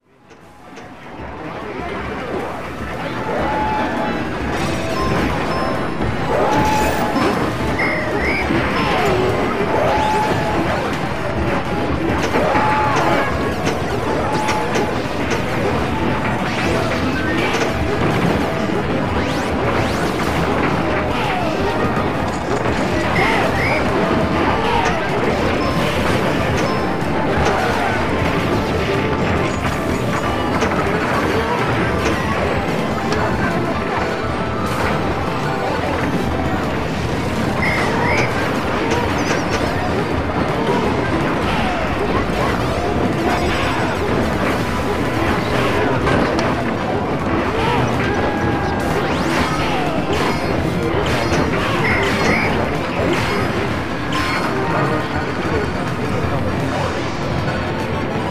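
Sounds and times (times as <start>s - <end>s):
arcade ambience: 0.0s - 58.2s.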